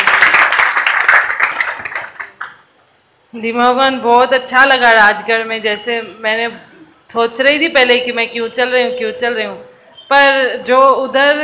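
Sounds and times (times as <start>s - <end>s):
clapping: 0.0s - 2.6s
speech: 3.3s - 11.4s.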